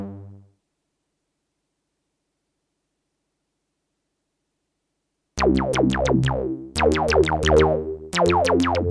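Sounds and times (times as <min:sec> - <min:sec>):
Roland System-8 and JP-08 synthesizers: 0:05.4 - 0:08.8.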